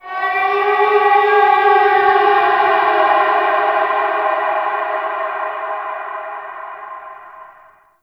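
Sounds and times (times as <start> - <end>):
landscape ambient texture: 0.0 - 8.0.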